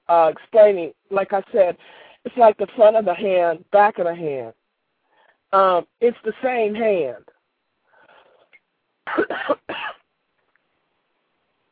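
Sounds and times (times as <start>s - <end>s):
speech: 0.1s - 4.6s, 5.5s - 7.3s, 9.1s - 9.6s
cough: 9.1s - 10.1s.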